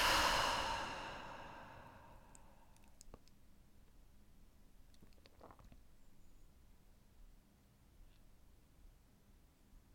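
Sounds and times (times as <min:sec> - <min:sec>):
deep releasing breath out: 0:00.0 - 0:02.7.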